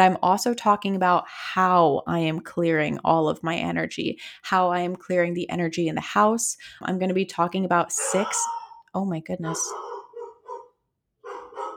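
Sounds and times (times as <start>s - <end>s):
speech: 0.0s - 9.9s
dog barking: 8.0s - 8.8s, 9.5s - 11.7s.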